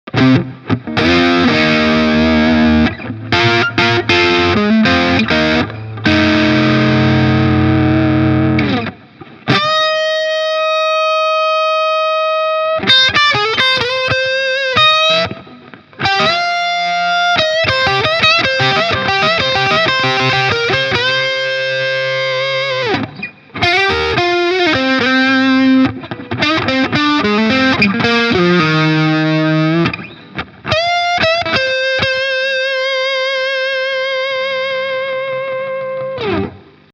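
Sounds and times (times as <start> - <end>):
FGN Neo Classic LS 30 distorted electric guitar middle pickup: 0.0 - 36.9.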